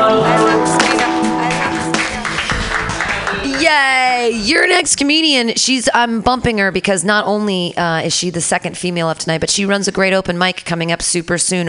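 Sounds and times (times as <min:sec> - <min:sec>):
audience clapping: 0:00.8 - 0:04.5
speech: 0:04.5 - 0:11.6.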